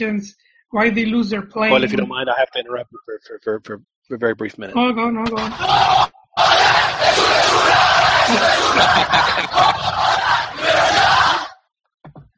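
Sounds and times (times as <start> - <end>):
speech: 0.0 - 11.5
laughter: 1.6 - 11.5
stadium crowd cheering a goal on TV: 1.7 - 2.7, 5.3 - 11.6.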